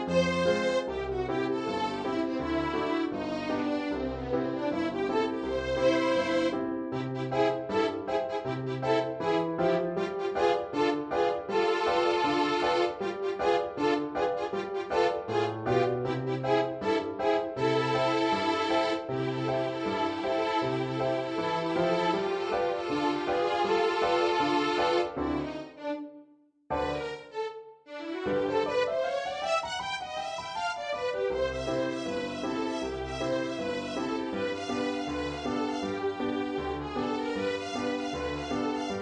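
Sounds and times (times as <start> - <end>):
ragtime piece: 0.0 - 26.0, 26.7 - 39.0.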